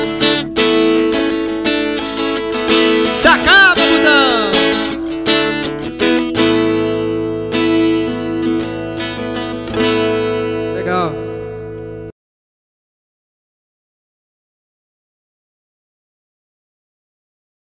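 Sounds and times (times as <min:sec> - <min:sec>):
forro vaquejada music: 0:00.0 - 0:12.1.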